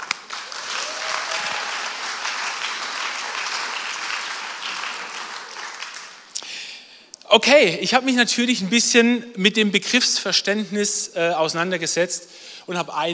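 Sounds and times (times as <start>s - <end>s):
crowd applauding: 0.0s - 6.4s
speech: 7.3s - 13.1s.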